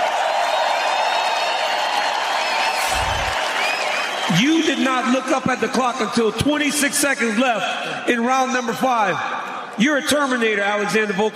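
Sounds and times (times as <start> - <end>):
large arena crowd applauding and cheering: 0.0 - 6.4
speech: 4.4 - 11.3.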